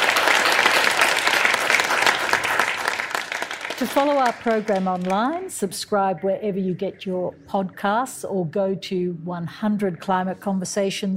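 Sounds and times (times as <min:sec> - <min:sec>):
audience round of applause: 0:00.0 - 0:05.4
speech: 0:03.8 - 0:11.1.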